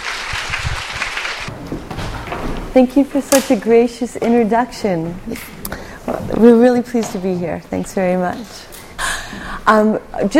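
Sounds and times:
crowd applause: 0:00.0 - 0:01.5
speech: 0:02.8 - 0:05.6, 0:06.4 - 0:08.7, 0:09.6 - 0:10.3.

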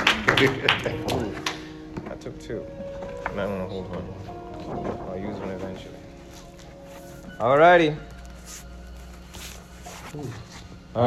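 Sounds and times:
scattered handclaps: 0:00.0 - 0:01.7
speech: 0:00.4 - 0:01.2, 0:02.2 - 0:06.1, 0:07.4 - 0:08.6, 0:10.1 - 0:11.0.

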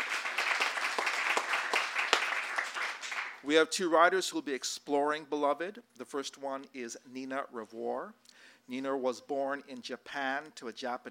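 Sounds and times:
audience applause: 0:00.0 - 0:03.4
speech: 0:03.4 - 0:11.1.

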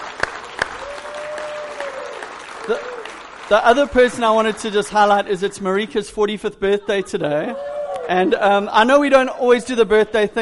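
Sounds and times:
crowd applause: 0:00.0 - 0:05.3
speech: 0:02.7 - 0:10.4.

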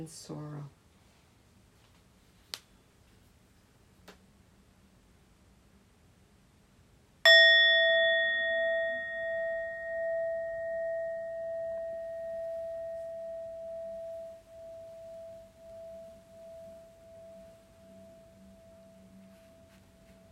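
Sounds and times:
meditation bell struck and ringing: 0:07.3 - 0:20.2.

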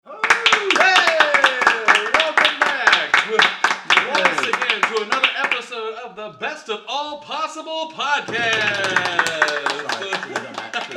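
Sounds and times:
scattered hand claps: 0:00.2 - 0:05.6, 0:08.3 - 0:10.9
speech: 0:07.6 - 0:09.2
lively crowd cheering, shouting and laughing: 0:08.3 - 0:10.9.

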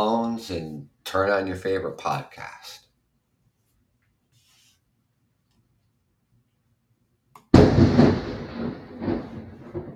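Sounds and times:
speech: 0:00.0 - 0:02.8
crack of thunder: 0:07.5 - 0:09.9.

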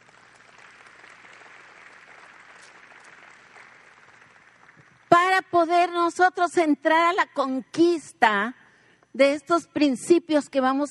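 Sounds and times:
audience applause: 0:00.0 - 0:05.1
speech: 0:05.4 - 0:08.6, 0:09.2 - 0:10.8.

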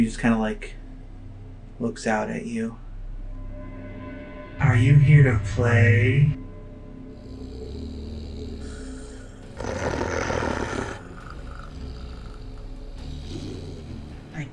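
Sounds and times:
speech: 0:00.0 - 0:00.8, 0:01.8 - 0:02.8, 0:04.6 - 0:06.4, 0:09.6 - 0:10.0
voice imitating an angry growl: 0:07.1 - 0:14.4.

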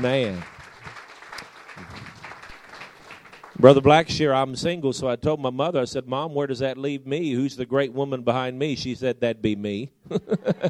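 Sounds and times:
speech: 0:00.0 - 0:00.6, 0:03.6 - 0:10.6
church congregation applauding: 0:00.0 - 0:04.1
laughter: 0:10.1 - 0:10.6.

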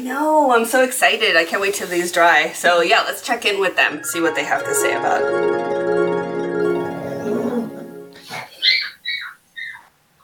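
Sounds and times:
speech: 0:00.0 - 0:06.0
puppy crying with high-pitched whimpers: 0:07.0 - 0:09.9.

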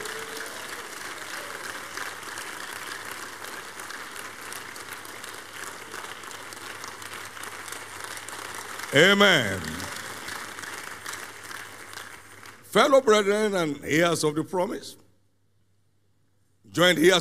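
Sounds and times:
audience clapping in praise: 0:00.0 - 0:13.7
speech: 0:08.9 - 0:09.8, 0:12.7 - 0:15.0, 0:16.8 - 0:17.2.

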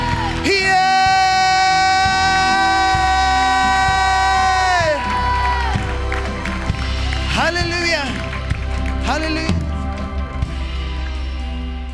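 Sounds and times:
audience shouting: 0:00.0 - 0:06.0
audience clapping: 0:00.0 - 0:11.6.

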